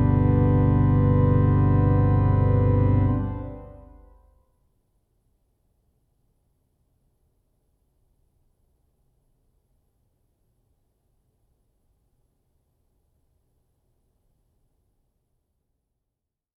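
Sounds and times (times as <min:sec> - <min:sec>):
organist playing a hymn: 0:00.0 - 0:04.1.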